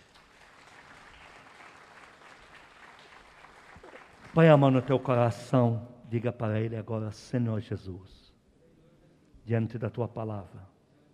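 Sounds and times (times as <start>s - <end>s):
audience applauding: 0.0s - 5.3s
speech: 4.4s - 8.2s, 9.5s - 10.7s.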